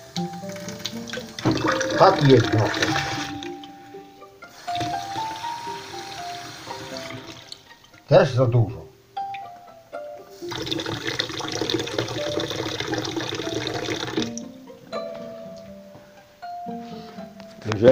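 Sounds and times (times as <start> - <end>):
water stream filling a glass: 0.2 - 3.6, 4.5 - 8.0, 10.4 - 14.4
speech: 1.7 - 3.1, 8.1 - 8.8.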